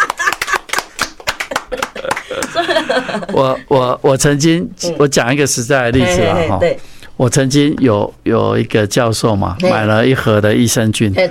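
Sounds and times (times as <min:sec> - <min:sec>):
hand clapping: 0:00.0 - 0:02.8
laughter: 0:00.0 - 0:03.8
speech: 0:01.7 - 0:11.2.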